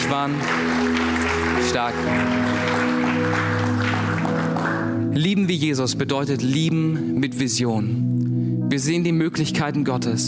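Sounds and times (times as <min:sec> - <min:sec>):
audience applause: 0:00.0 - 0:05.1
sustained low musical tones: 0:00.0 - 0:10.2
speech: 0:00.1 - 0:03.5, 0:05.2 - 0:10.2.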